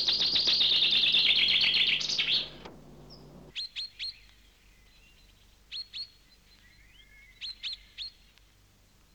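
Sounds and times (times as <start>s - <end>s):
bird giving varied chattering calls: 0.0s - 3.5s.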